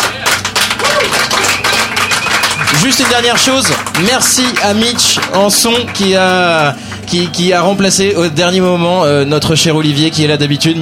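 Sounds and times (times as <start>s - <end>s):
audience applauding the musicians: 0.0s - 7.7s
speech: 2.8s - 10.8s.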